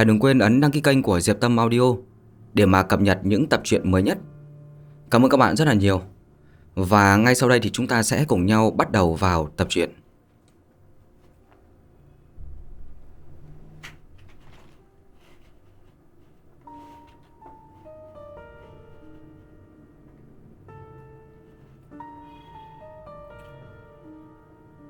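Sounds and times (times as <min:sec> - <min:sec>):
speech: 0:00.0 - 0:04.3, 0:05.1 - 0:06.1, 0:06.8 - 0:10.0
low rumbling: 0:12.3 - 0:14.4
heavy purple-gold door creaking slowly open: 0:12.4 - 0:14.8.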